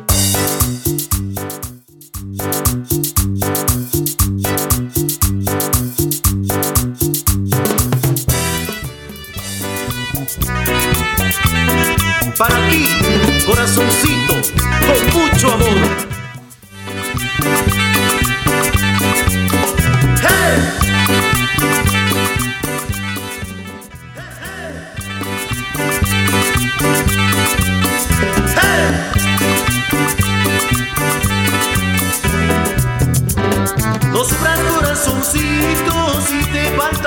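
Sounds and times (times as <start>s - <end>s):
simple music intro: 0.1s - 37.0s.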